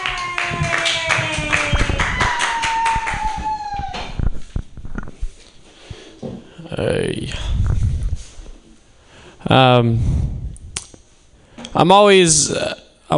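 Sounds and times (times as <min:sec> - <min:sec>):
audience applauding a comedian at a stand-up comedy workshop show: 0:00.0 - 0:04.0
whistle gliding downward: 0:00.4 - 0:04.2
speech: 0:06.8 - 0:07.6, 0:09.4 - 0:10.3, 0:11.7 - 0:13.1.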